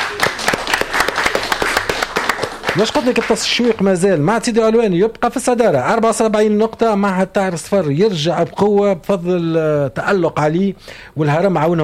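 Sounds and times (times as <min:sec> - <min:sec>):
quiz game audience clapping: 0:00.0 - 0:04.0
speech: 0:02.8 - 0:11.8.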